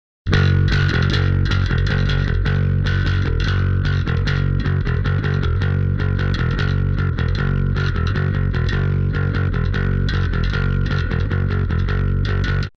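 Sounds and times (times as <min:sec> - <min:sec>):
bass: 0:00.3 - 0:12.7.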